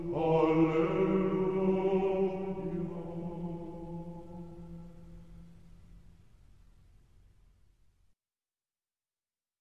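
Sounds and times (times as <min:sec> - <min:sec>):
choir singing: 0:00.0 - 0:04.8.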